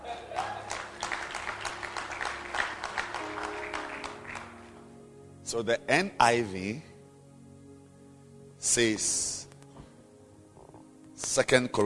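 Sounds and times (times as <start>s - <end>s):
church congregation applause at the opening session of a gathering: 0.0s - 4.8s
speech: 5.5s - 6.9s, 8.7s - 9.4s, 11.4s - 11.8s.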